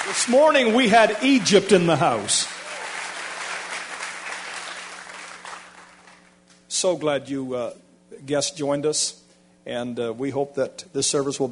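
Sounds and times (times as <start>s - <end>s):
crowd hand clapping: 0.0s - 6.6s
speech: 0.1s - 2.6s, 6.8s - 11.5s.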